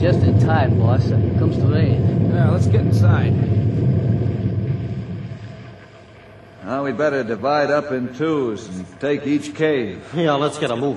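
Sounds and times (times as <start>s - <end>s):
speech: 0.0s - 4.0s, 6.7s - 10.9s
distant dynamite explosion rumble: 0.0s - 6.7s.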